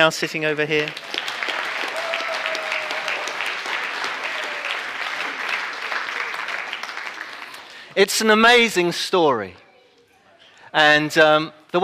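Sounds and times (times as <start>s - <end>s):
speech: 0.0s - 1.2s, 8.0s - 9.6s, 10.8s - 11.8s
audience applause: 0.8s - 8.0s.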